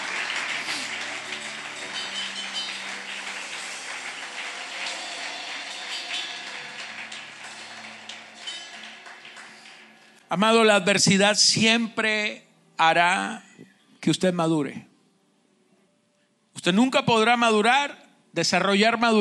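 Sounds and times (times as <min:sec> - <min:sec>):
audience applause: 0:00.0 - 0:10.3
speech: 0:10.3 - 0:14.9, 0:16.6 - 0:19.2.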